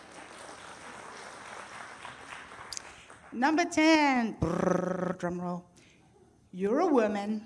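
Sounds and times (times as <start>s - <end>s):
audience applause: 0.0s - 3.4s
speech: 3.3s - 5.7s, 6.5s - 7.4s.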